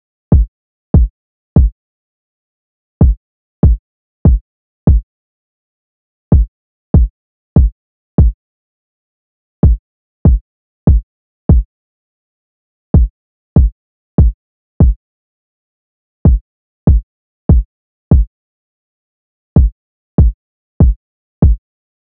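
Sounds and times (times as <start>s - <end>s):
kick drum: 0.4s - 1.8s, 3.0s - 5.0s, 6.4s - 8.4s, 9.6s - 11.7s, 13.0s - 15.0s, 16.3s - 18.3s, 19.6s - 21.6s.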